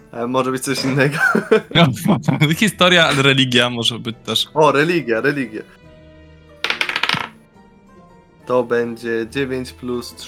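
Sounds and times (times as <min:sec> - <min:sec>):
speech: 0:00.1 - 0:05.8, 0:08.5 - 0:10.2
laughter: 0:00.8 - 0:03.2
dice clattering across a hard surface: 0:06.6 - 0:07.4.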